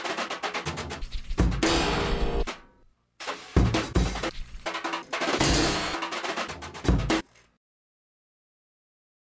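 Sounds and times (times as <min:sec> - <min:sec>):
drums: 0:00.0 - 0:07.4.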